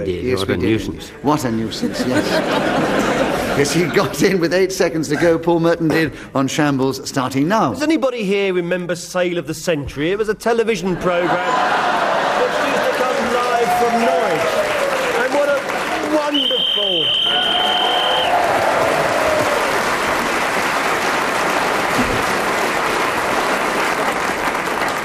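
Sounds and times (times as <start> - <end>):
speech: 0.0 - 11.8
laughter: 1.4 - 4.5, 10.9 - 14.6
studio audience cheering and applauding: 11.2 - 25.0
shrill whistle: 16.3 - 18.4.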